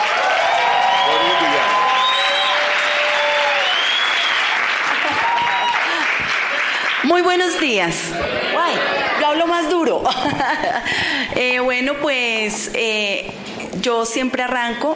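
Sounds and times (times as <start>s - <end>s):
cheers and whistles: 0.0s - 6.0s
sustained audience applause: 0.0s - 9.3s
laughter: 4.7s - 6.8s, 10.0s - 11.0s
speech: 7.1s - 14.9s.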